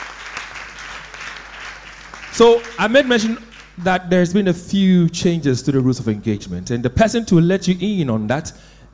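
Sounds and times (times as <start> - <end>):
audience applause: 0.0 - 3.8
speech: 2.4 - 8.8.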